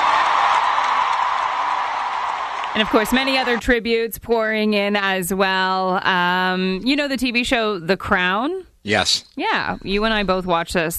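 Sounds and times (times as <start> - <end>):
concert crowd applauding and cheering: 0.0 - 3.6
speech: 2.8 - 10.9.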